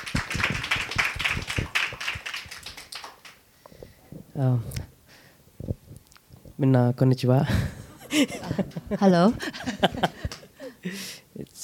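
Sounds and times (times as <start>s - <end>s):
audience clapping: 0.0s - 3.5s, 10.2s - 10.5s
speech: 4.4s - 4.8s, 6.6s - 7.6s, 8.2s - 10.1s.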